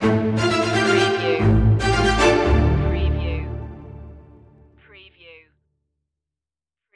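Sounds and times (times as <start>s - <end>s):
strings stinger: 0.0s - 4.6s.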